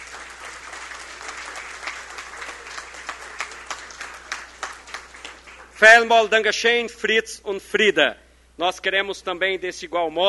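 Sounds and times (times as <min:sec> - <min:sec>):
audience applause: 0:00.0 - 0:05.8
speech: 0:05.8 - 0:10.2.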